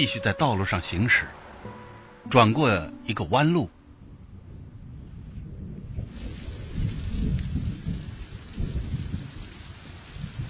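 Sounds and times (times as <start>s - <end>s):
speech: 0.0s - 3.8s
light rain falling: 4.0s - 10.4s.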